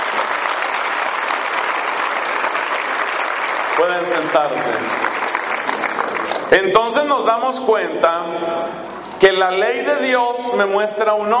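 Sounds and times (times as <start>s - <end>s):
audience applause: 0.0s - 6.5s
speech: 3.8s - 5.3s, 6.5s - 11.3s.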